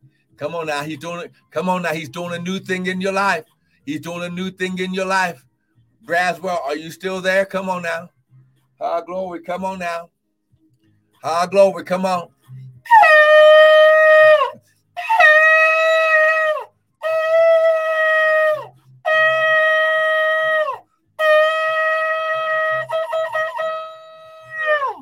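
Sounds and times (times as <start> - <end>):
speech: 0.4 - 8.1, 8.8 - 10.2, 11.2 - 15.3
shofar blasts: 12.9 - 24.9.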